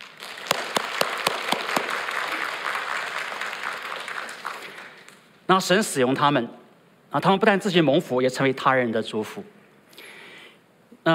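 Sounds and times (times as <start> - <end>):
audience applause: 0.0 - 5.2
speech: 5.5 - 9.6.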